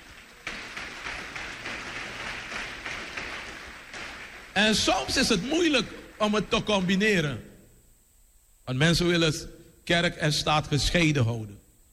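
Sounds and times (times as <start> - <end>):
church audience applause: 0.0 - 6.9
speech: 4.6 - 7.5, 8.7 - 11.6.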